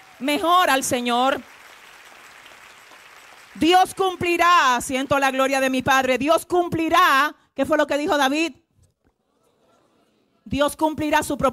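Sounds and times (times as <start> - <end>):
audience applause: 0.0 - 4.4
speech: 0.2 - 1.6, 3.6 - 8.6, 10.5 - 11.5.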